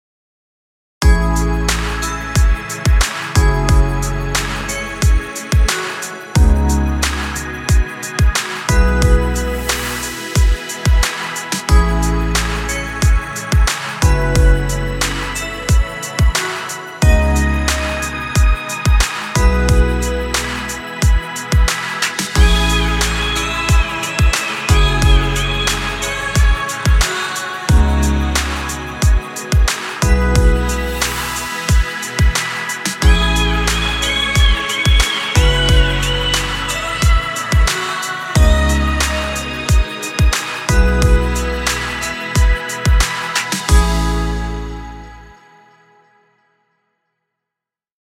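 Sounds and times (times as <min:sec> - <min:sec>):
ambient hip-hop relax music: 0:01.0 - 0:46.3.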